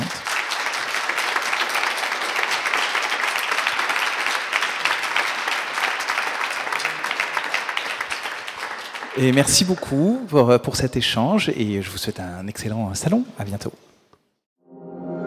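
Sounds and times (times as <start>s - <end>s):
audience applause: 0.0s - 10.2s
speech: 9.2s - 13.8s.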